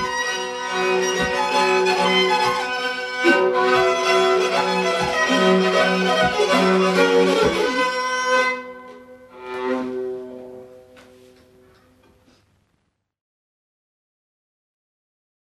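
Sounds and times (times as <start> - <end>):
nyckelharpa: 0.0 - 9.0.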